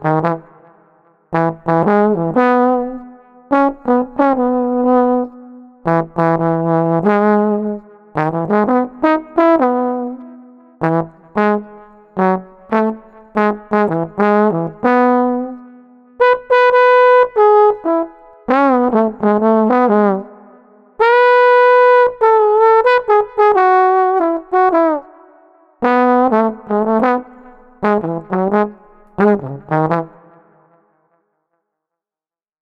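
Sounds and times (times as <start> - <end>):
trombone playing in the street: 0.0 - 0.5, 1.4 - 5.3, 5.9 - 10.2, 10.8 - 15.6, 16.2 - 20.3, 21.0 - 25.0, 25.8 - 30.2.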